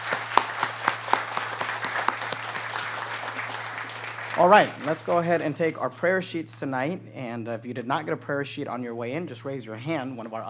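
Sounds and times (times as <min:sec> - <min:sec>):
audience round of applause: 0:00.0 - 0:05.5
speech: 0:04.4 - 0:10.4.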